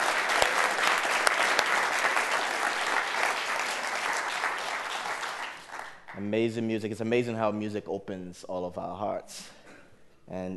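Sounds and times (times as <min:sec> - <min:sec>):
audience applause: 0:00.0 - 0:06.2
speech: 0:06.2 - 0:09.6, 0:10.3 - 0:10.5.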